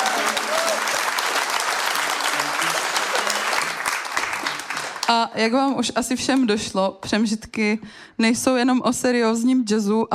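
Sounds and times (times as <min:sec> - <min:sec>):
audience applause: 0:00.0 - 0:05.2
speech: 0:05.1 - 0:10.1.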